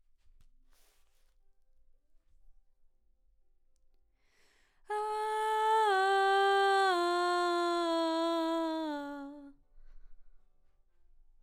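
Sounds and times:
background vocals: 4.9 - 9.5.

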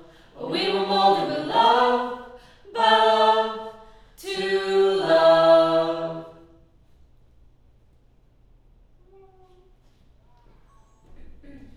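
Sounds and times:
choir singing: 0.0 - 6.6.

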